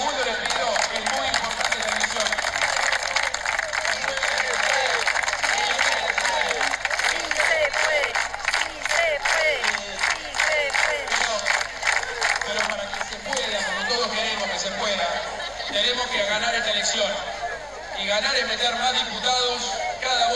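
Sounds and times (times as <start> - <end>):
clapping: 0.0 - 13.7
laughter: 0.0 - 20.2
crowd chanting and cheering: 2.2 - 13.7.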